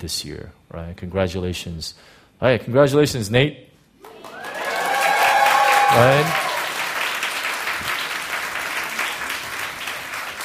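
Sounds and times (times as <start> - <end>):
speech: 0.0 - 4.4, 5.9 - 6.5
audience applauding: 4.0 - 10.4.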